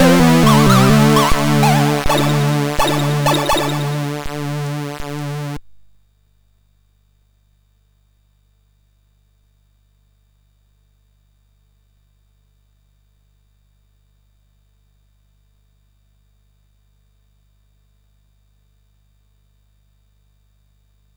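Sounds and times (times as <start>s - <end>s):
SID MOS6581R3 chip sound: 0.0s - 5.6s.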